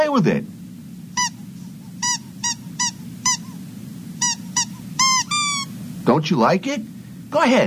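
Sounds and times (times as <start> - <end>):
speech: 0.2 - 0.6, 6.1 - 7.6
squeaky toy mouse squeaking: 1.2 - 1.4, 2.0 - 3.6, 4.2 - 5.7.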